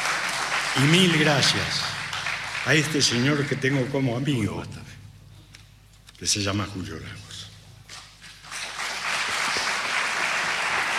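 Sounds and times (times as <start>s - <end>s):
audience applause: 0.0s - 3.9s, 8.3s - 10.9s
speech: 0.8s - 2.0s, 2.6s - 5.0s, 6.2s - 7.4s.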